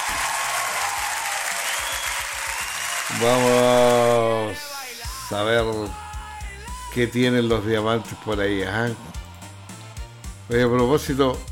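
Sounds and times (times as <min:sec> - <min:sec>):
audience applause: 0:00.0 - 0:04.4
speech: 0:03.1 - 0:04.7, 0:05.3 - 0:06.0, 0:06.9 - 0:09.2, 0:10.5 - 0:11.5.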